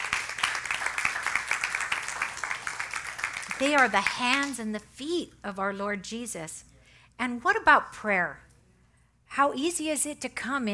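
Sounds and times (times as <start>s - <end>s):
audience applause: 0.0s - 4.4s
speech: 3.6s - 8.4s, 9.3s - 10.7s.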